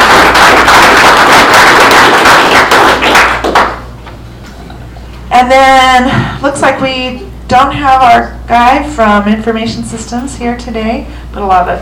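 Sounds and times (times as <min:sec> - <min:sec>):
audience applause: 0:00.0 - 0:03.9
speech: 0:05.4 - 0:11.7.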